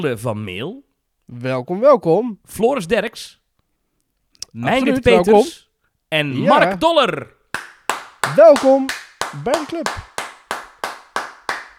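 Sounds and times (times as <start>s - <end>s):
speech: 0.0s - 3.4s, 4.5s - 7.4s, 8.3s - 10.1s
audience applause: 7.6s - 11.7s.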